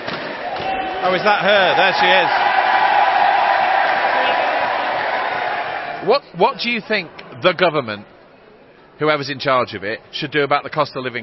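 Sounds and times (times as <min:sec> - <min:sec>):
crowd roaring and cheering: 0:00.0 - 0:06.2
speech: 0:01.0 - 0:02.5, 0:06.0 - 0:08.1, 0:09.0 - 0:11.2.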